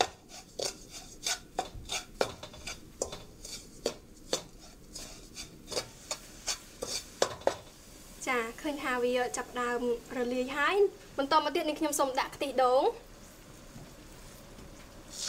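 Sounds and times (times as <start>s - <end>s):
spoon stirring sugar so it dissolves: 0.0s - 7.6s
speech: 9.0s - 13.1s.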